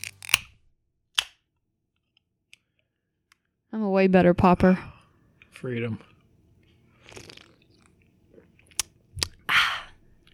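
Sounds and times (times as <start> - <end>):
speech: 3.7 - 4.9, 5.6 - 6.1
person chewing and eating something crispy: 6.9 - 9.4.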